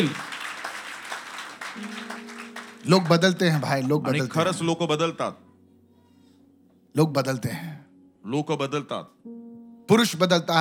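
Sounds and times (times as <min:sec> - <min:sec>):
speech: 0:00.0 - 0:00.2, 0:02.8 - 0:05.4, 0:07.0 - 0:09.2, 0:09.9 - 0:10.5
crowd clapping: 0:00.0 - 0:04.5.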